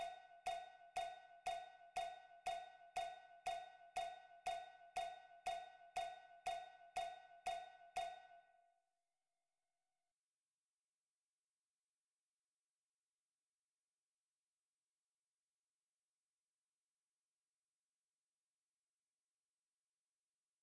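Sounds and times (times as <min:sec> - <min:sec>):
metronome ticking: 0:00.0 - 0:08.3.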